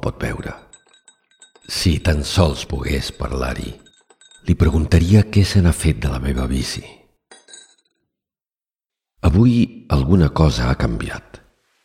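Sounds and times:
speech: 0.0s - 0.7s, 1.7s - 3.8s, 4.4s - 7.0s, 9.3s - 11.4s
spoon stirring coffee clinking against the cup: 0.3s - 5.0s, 7.3s - 7.9s.

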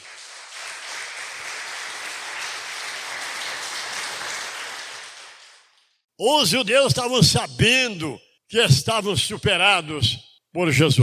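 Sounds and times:
audience applause: 0.0s - 5.8s
speech: 6.2s - 11.0s.

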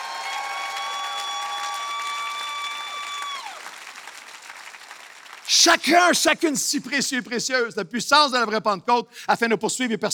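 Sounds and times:
audience applause: 0.0s - 6.5s
speech: 5.5s - 10.1s.

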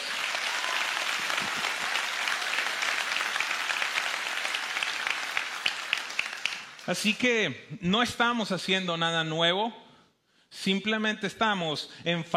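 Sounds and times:
audience applause: 0.0s - 7.2s
speech: 6.9s - 9.8s, 10.5s - 12.3s.

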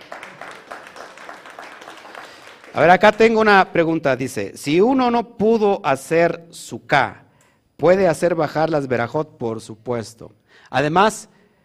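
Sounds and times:
group clapping: 0.0s - 3.6s
speech: 2.8s - 7.2s, 7.8s - 11.3s.

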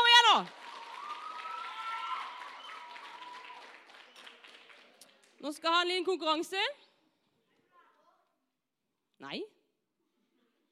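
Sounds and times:
audience applause: 0.0s - 5.4s
speech: 0.4s - 0.6s, 5.4s - 6.9s, 9.2s - 9.6s.

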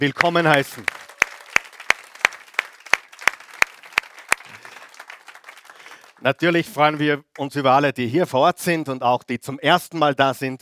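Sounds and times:
speech: 0.0s - 1.0s, 6.2s - 10.6s
warm applause from audience: 0.0s - 7.5s.

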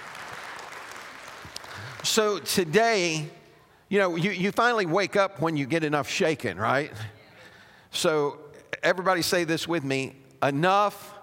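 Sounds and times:
audience clapping hands in praise: 0.0s - 2.6s
speech: 2.0s - 7.2s, 7.9s - 11.2s.

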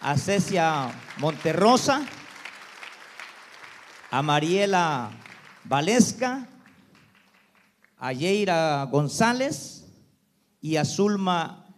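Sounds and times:
speech: 0.0s - 2.2s, 4.1s - 6.5s, 8.0s - 9.8s, 10.6s - 11.6s
audience applauding: 0.0s - 8.0s.

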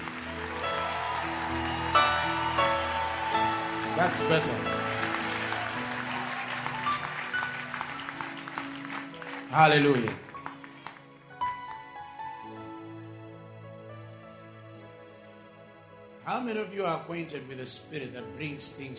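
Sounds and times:
audience hand clapping: 0.0s - 11.6s
speech: 4.0s - 4.9s, 9.5s - 10.2s, 16.4s - 18.9s.

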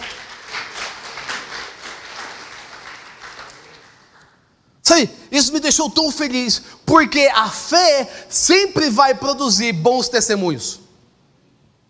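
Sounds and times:
audience applauding: 0.0s - 4.4s
speech: 5.0s - 10.8s.

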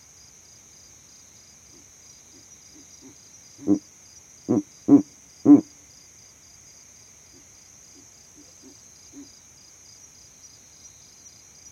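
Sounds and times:
Verreaux's eagle owl hooting: 2.8s - 3.8s, 4.5s - 5.7s.

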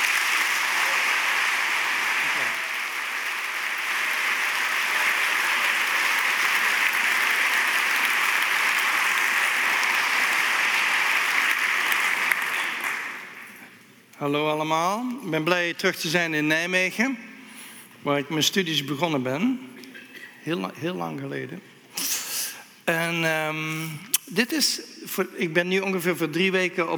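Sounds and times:
audience applause: 0.0s - 13.6s
speech: 14.2s - 17.3s, 18.0s - 19.7s, 20.4s - 21.7s, 22.9s - 26.9s.

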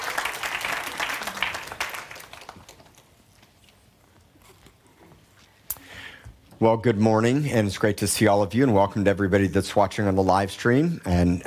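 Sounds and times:
audience applause for the ladies at a church service: 0.0s - 3.2s
speech: 6.6s - 11.4s.

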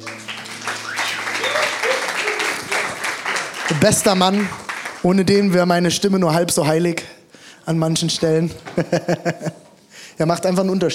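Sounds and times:
audience applause: 0.0s - 5.6s
laughter: 0.7s - 4.0s, 8.6s - 9.7s
speech: 3.7s - 9.6s, 10.2s - 10.9s.

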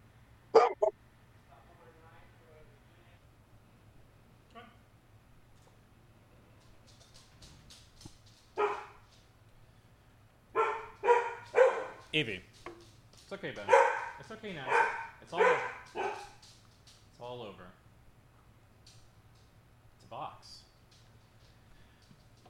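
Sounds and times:
dog barking: 0.6s - 0.9s, 8.6s - 9.0s, 10.6s - 12.0s, 13.6s - 16.4s
speech: 12.2s - 12.6s, 13.3s - 16.2s, 17.2s - 17.8s.

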